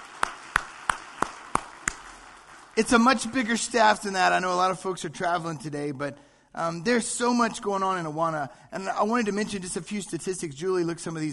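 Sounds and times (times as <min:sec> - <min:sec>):
hand claps at a church service: 0:00.0 - 0:02.9
speech: 0:02.8 - 0:11.3.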